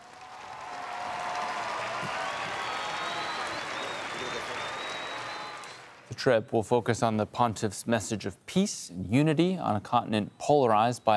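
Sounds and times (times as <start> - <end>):
cheers and whistles: 0.0 - 6.0
large crowd applauding: 0.0 - 6.2
speech: 6.1 - 11.1.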